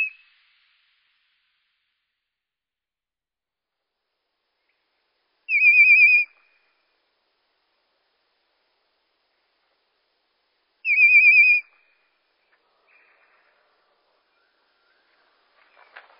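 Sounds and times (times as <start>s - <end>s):
common blackbird song slowed down: 0.0s - 0.9s, 5.5s - 6.8s, 10.8s - 16.0s.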